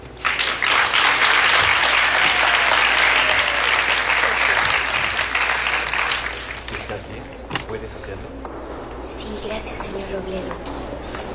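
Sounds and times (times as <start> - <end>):
audience applauding to welcome a performer: 0.0 - 7.4.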